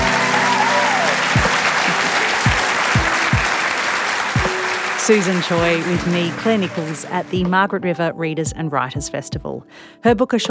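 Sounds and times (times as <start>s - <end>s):
large audience applause: 0.0s - 7.1s
speech: 5.1s - 10.4s.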